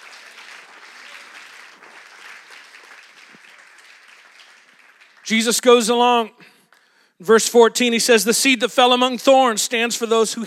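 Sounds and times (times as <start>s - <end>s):
crowd clapping hands: 0.0s - 6.0s
speech: 5.3s - 6.5s, 7.2s - 10.4s.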